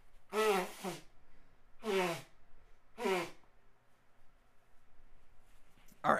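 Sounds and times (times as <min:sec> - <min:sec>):
quiet hiss: 0:00.0 - 0:06.1
person blowing nose: 0:00.3 - 0:01.2, 0:01.8 - 0:02.4, 0:03.0 - 0:03.5.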